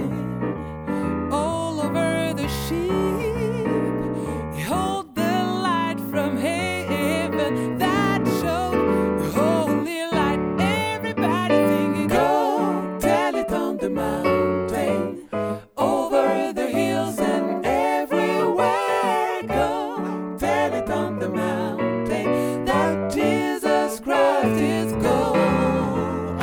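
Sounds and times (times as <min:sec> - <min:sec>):
tenors and basses singing gospel: 0:00.0 - 0:26.4.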